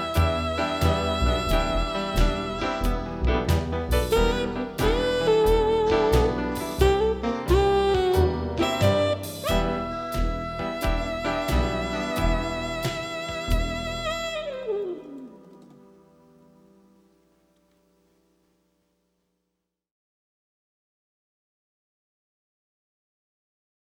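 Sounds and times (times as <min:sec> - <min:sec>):
funky blues music: 0:00.0 - 0:15.0.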